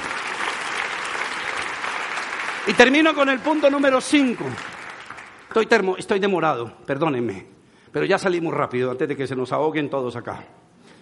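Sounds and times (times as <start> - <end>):
audience applause: 0.0 - 5.6
speech: 2.6 - 4.7, 5.5 - 10.6.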